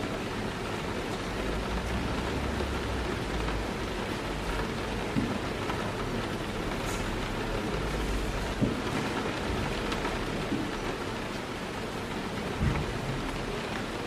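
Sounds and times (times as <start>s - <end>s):
rain pattering: 0.0s - 14.0s.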